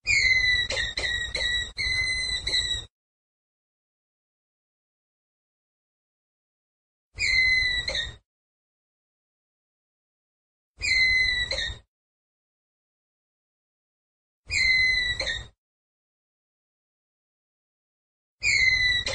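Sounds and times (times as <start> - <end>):
ground squirrel whistled call: 0.0 - 2.9, 7.2 - 8.1, 10.8 - 11.8, 14.5 - 15.5, 18.4 - 19.1.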